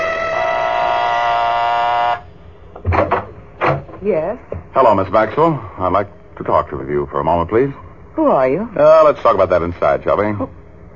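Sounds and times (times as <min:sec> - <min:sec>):
electric doorbell buzzing: 0:00.0 - 0:02.3
soft knocks: 0:02.7 - 0:04.8
speech: 0:04.0 - 0:10.6.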